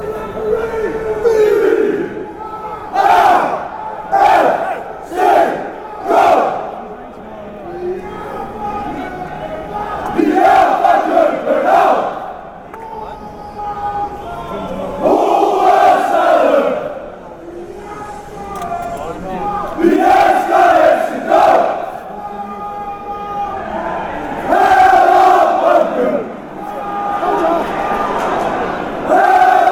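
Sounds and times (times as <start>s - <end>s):
chanting: 0.0s - 29.7s.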